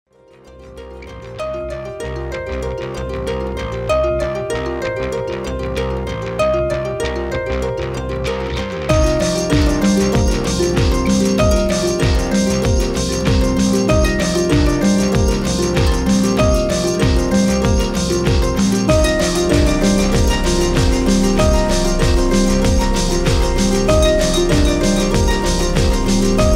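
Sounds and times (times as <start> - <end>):
electronic beat: 1.4 - 26.5.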